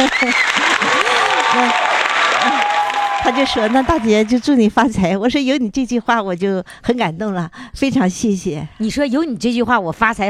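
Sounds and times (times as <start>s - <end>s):
speech: 0.0s - 0.9s, 1.5s - 2.6s, 3.2s - 10.2s
voices cheering: 0.0s - 4.4s
audience applause: 0.0s - 4.5s.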